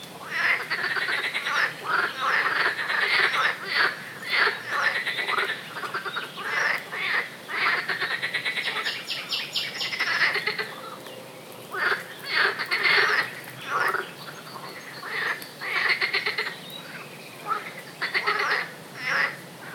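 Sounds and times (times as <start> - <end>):
frogs croaking: 0.0 - 19.7.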